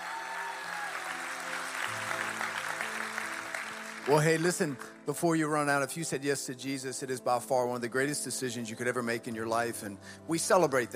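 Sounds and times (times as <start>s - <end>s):
audience clapping: 0.0s - 5.2s
speech: 4.1s - 10.9s.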